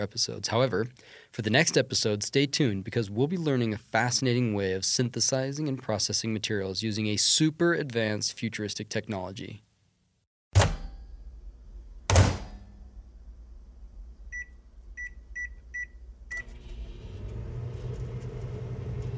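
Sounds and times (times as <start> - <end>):
speech: 0.0 - 9.7
kitchen microwave running: 14.4 - 19.1.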